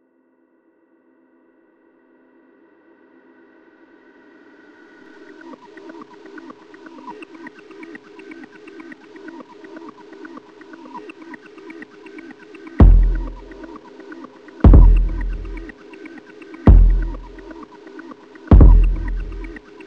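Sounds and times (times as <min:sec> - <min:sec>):
pocket operator and Renoise electronic music: 0:08.6 - 0:19.8.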